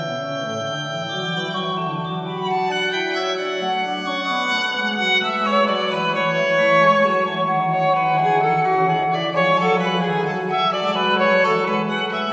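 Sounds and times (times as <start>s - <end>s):
violin: 0.0s - 12.3s.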